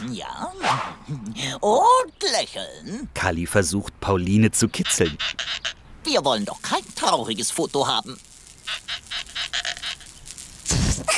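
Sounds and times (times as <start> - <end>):
speech: 0.2 - 9.0
rubber balloon squeaking: 8.7 - 11.1.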